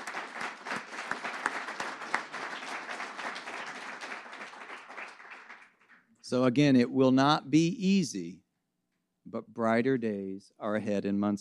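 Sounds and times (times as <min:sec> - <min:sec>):
audience applause: 0:00.0 - 0:06.0
speech: 0:06.3 - 0:08.4, 0:09.3 - 0:11.3.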